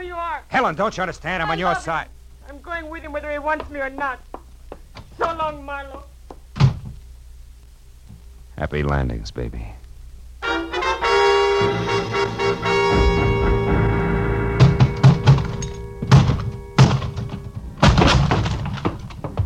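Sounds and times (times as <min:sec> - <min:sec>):
speech: 0:00.4 - 0:04.3, 0:05.2 - 0:06.1, 0:08.6 - 0:09.8
locked closet door being forced, thumps and bangs against a wooden door: 0:06.5 - 0:07.0, 0:14.6 - 0:19.4
droning musical tone: 0:10.4 - 0:19.4.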